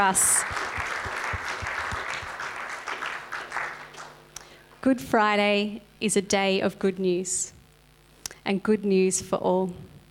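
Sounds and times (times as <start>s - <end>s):
speech: 0.0s - 0.8s, 4.8s - 7.6s, 8.4s - 9.9s
round of applause: 0.0s - 4.3s.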